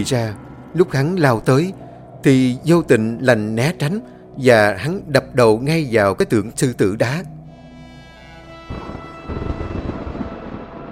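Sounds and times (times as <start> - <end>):
speech: 0.0 - 7.4
deep thunder rumbling: 8.7 - 10.8
heavy rain: 8.7 - 10.8.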